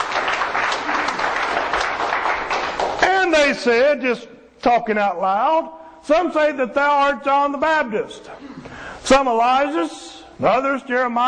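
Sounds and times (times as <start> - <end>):
audience applause: 0.0 - 3.0
speech: 3.5 - 11.2.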